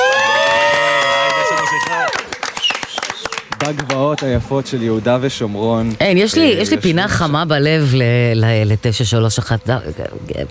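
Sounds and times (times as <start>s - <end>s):
crowd cheering: 0.0s - 4.3s
speech: 3.6s - 10.4s.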